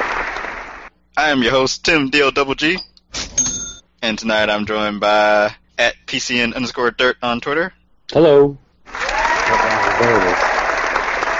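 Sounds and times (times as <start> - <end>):
applause: 0.0 - 0.9, 8.9 - 11.3
speech: 1.2 - 2.9, 4.0 - 8.6, 10.0 - 10.5.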